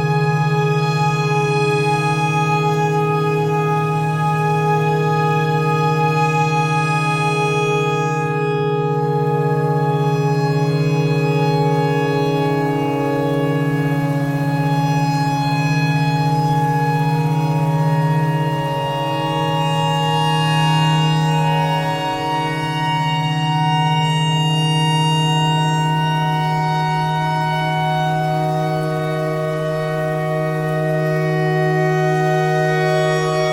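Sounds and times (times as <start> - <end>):
clarinet notes: 0.0 - 33.5
tornado siren: 0.0 - 33.5.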